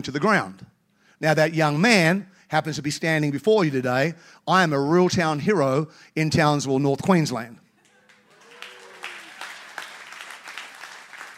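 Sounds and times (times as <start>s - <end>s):
speech: 0.0s - 0.6s, 1.2s - 7.6s
polite golf clap applause: 7.8s - 11.3s.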